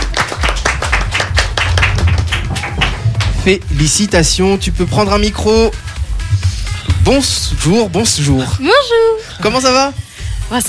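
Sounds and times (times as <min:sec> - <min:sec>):
audience applause: 0:00.0 - 0:03.5
speech: 0:03.4 - 0:05.9, 0:07.1 - 0:10.6.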